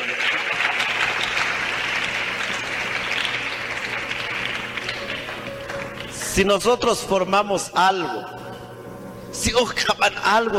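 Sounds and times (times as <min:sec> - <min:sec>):
audience applause: 0:00.0 - 0:06.2
speech: 0:06.4 - 0:08.4, 0:09.4 - 0:10.5.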